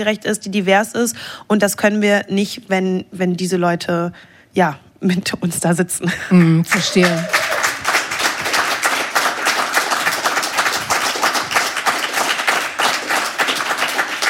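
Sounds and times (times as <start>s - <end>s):
speech: 0.0s - 7.4s
long sustained applause: 6.6s - 14.2s.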